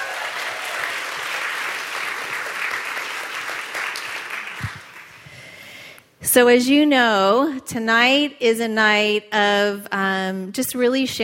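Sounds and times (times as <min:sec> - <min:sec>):
audience clapping at an evening event about sharing hope: 0:00.0 - 0:05.5
speech: 0:06.3 - 0:11.2.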